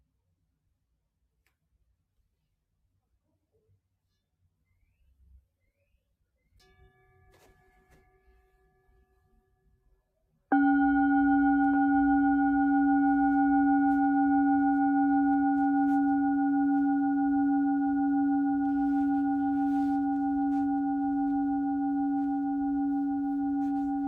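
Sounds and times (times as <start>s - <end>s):
singing bowl from Mexico struck and ringing: 10.5s - 24.0s.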